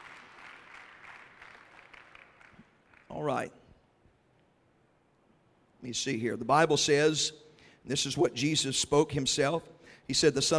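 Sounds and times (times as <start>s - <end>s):
church congregation clapping during a Sunday school service: 0.0s - 3.5s
speech: 3.1s - 3.6s, 5.8s - 10.5s.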